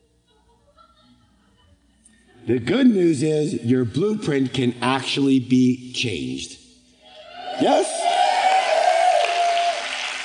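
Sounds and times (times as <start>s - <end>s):
speech: 2.5s - 6.6s, 7.6s - 8.0s
audience clapping: 8.0s - 10.2s.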